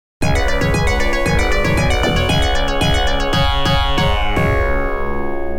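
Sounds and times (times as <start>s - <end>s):
game over jingle: 0.2s - 5.4s.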